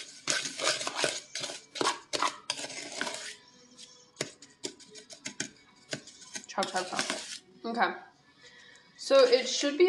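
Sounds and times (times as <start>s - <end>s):
wooden spoon scraping and knocking in a bowl mixing butter and sugar: 0.0s - 7.5s
speech: 6.6s - 8.1s, 9.1s - 9.8s.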